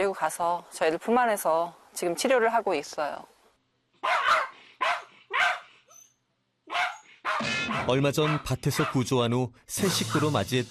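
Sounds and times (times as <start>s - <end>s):
speech: 0.0s - 3.3s, 7.8s - 10.7s
dog barking: 4.0s - 6.0s, 6.6s - 9.0s.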